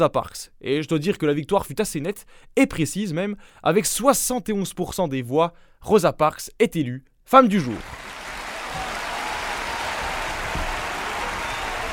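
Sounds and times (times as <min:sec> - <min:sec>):
speech: 0:00.0 - 0:08.9
applause: 0:07.6 - 0:11.9.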